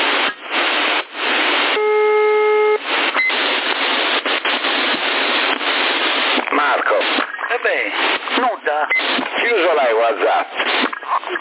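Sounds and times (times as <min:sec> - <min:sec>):
loud hissing line static: 0:00.0 - 0:11.3
phone ringback tone: 0:01.8 - 0:02.8.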